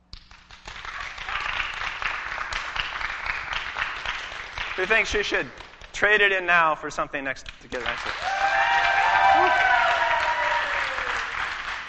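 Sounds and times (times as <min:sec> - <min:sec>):
audience applause: 0:00.6 - 0:05.8, 0:07.8 - 0:11.8
speech: 0:04.8 - 0:08.4.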